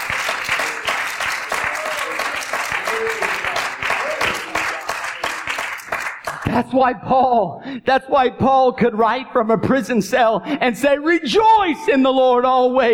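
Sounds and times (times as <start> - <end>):
audience clapping: 0.0 - 6.7
speech: 6.6 - 12.9.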